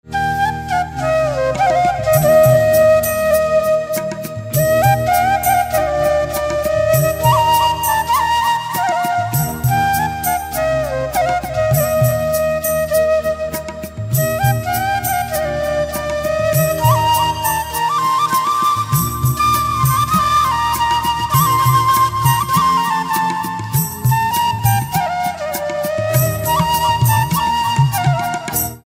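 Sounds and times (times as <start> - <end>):
flute: 0.0 - 28.8.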